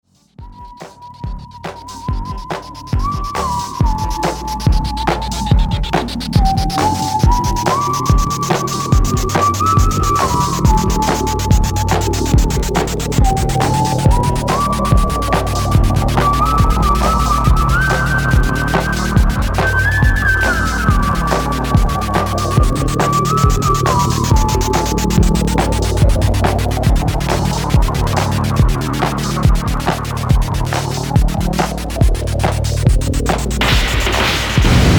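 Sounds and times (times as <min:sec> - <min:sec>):
computer making musical sounds: 0:00.4 - 0:34.8.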